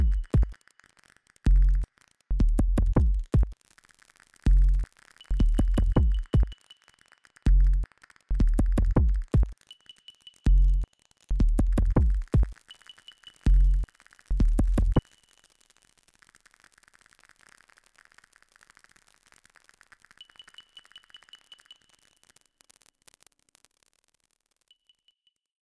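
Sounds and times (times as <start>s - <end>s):
minuet beat: 0.0s - 0.6s, 1.5s - 3.6s, 4.5s - 6.6s, 7.5s - 15.0s.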